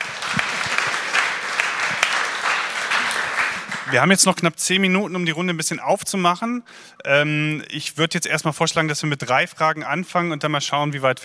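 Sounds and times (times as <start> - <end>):
audience applause: 0.0 - 4.3
speech: 3.9 - 11.2.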